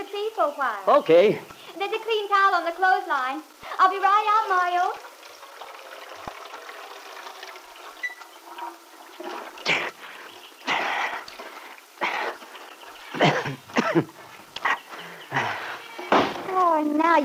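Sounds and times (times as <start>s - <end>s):
speech: 0.4s - 5.1s, 13.2s - 14.2s, 16.8s - 17.2s
water splashing as someone washes their head outdoors: 3.6s - 16.8s.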